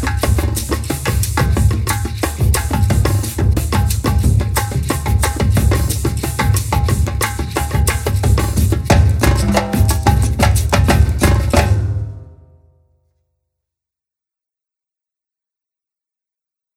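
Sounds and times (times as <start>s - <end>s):
repinique drum: 0.0s - 12.6s.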